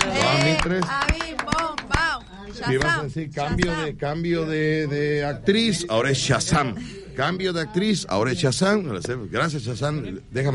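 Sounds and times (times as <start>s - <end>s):
scattered hand claps: 0.0s - 3.8s
speech: 0.5s - 1.2s, 2.6s - 10.5s.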